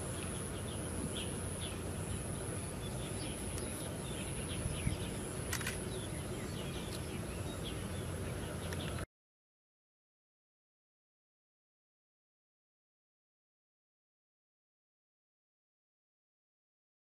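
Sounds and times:
bar-winged prinia song with high rapid buzzy trills: 0.0s - 9.0s.

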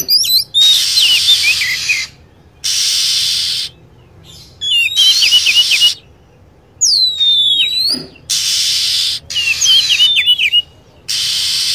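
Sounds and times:
lovebird chirping: 0.0s - 11.7s.

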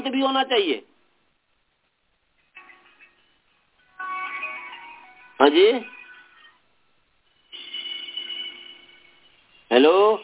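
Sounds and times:
speech: 0.1s - 0.9s, 5.4s - 6.0s, 9.7s - 10.2s
mobile phone electronic ringtone during a Sanskrit grammar lesson: 2.6s - 10.2s.

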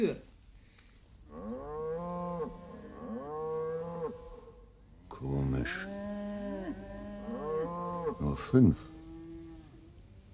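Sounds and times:
speech: 0.0s - 0.3s, 5.2s - 6.0s, 8.2s - 8.9s
cattle mooing: 1.3s - 4.6s, 5.6s - 9.9s.

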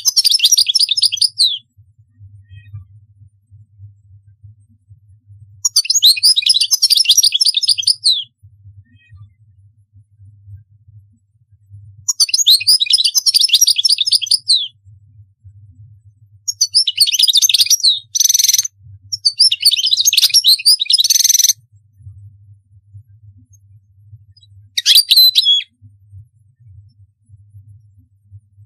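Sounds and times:
European goldfinch song: 0.0s - 1.7s, 5.6s - 8.3s, 12.1s - 14.8s, 16.5s - 21.6s, 24.3s - 25.8s
faint low hum: 0.0s - 28.6s.

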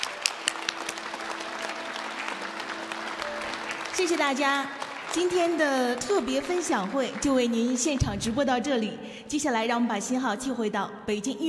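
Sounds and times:
audience applause at a live reading event: 0.0s - 8.4s
speech: 4.0s - 11.4s.

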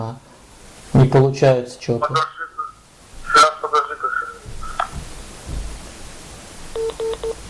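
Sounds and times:
speech: 0.0s - 0.3s, 0.9s - 2.4s
low hiss: 0.0s - 7.4s
electronic telephone line tones after a call is hung up: 6.7s - 7.4s.

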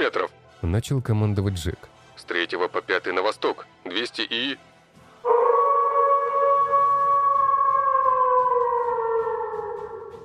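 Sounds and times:
speech: 0.0s - 4.7s
grey wolf howling: 5.3s - 10.2s.

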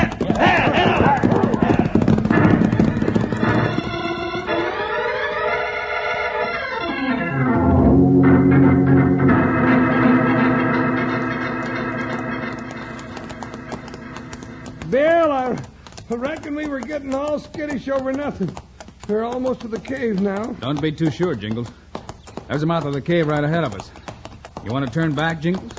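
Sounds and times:
horses of an outlaw gang galloping off: 0.0s - 7.0s, 9.2s - 25.7s
sustained musical tones in an old Western radio drama: 3.4s - 14.7s
speech: 17.0s - 21.8s, 22.5s - 24.0s, 24.6s - 25.7s.

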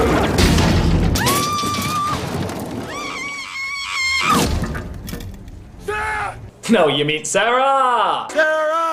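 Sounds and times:
trailer window glass creaking and cracking: 0.1s - 5.5s
speech: 6.7s - 8.8s.

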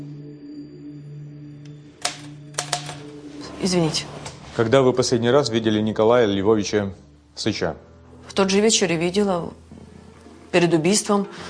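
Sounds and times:
typewriter typing: 2.0s - 3.1s
speech: 3.6s - 9.6s, 10.5s - 11.4s.

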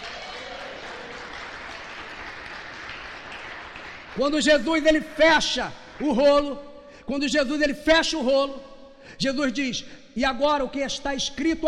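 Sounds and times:
church congregation applauding during a sermon: 0.0s - 6.6s
speech: 4.2s - 11.6s.

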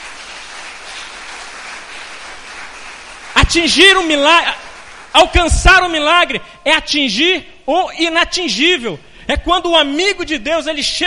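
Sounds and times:
audience applauding: 0.0s - 5.4s
speech: 3.5s - 4.6s, 5.2s - 11.0s.

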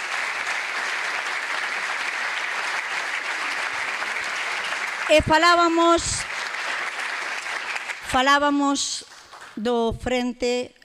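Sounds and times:
audience applause: 0.0s - 9.6s
speech: 5.1s - 6.3s, 8.1s - 10.8s.

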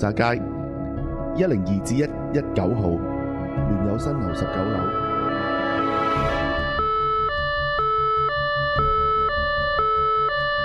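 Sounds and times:
speech: 0.0s - 0.6s, 1.4s - 5.5s
ambulance siren wailing in a two-tone hi-lo pattern in Sai Wan: 3.6s - 10.6s
rising whoosh: 4.9s - 6.8s.

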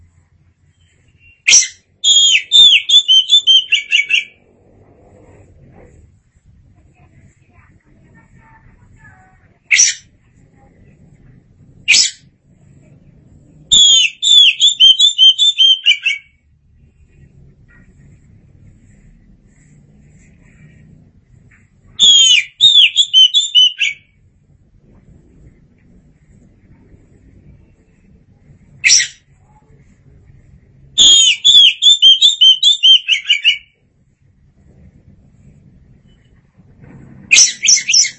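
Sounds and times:
Oriental magpie-robin song: 0.7s - 4.4s, 9.6s - 10.1s, 13.7s - 16.4s, 22.0s - 24.1s, 31.0s - 33.8s, 37.3s - 38.1s.

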